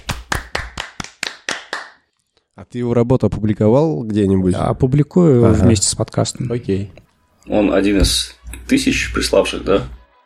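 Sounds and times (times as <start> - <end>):
hand claps congratulating someone: 0.0 - 2.1
speech: 2.6 - 10.0.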